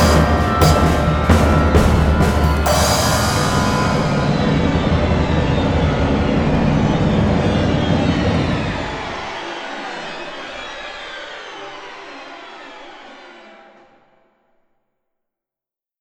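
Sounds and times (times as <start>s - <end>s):
tension music: 0.0s - 12.7s.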